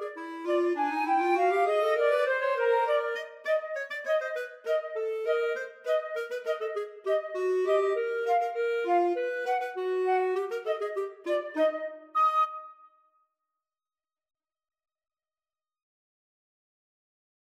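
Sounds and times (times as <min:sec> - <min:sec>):
flute and clarinet duet: 0:00.0 - 0:12.8.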